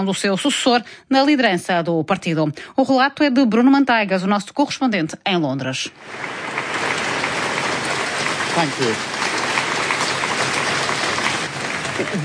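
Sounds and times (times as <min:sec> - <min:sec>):
speech: 0:00.0 - 0:06.7, 0:08.6 - 0:09.2, 0:12.0 - 0:12.2
staff applauding: 0:06.1 - 0:12.2.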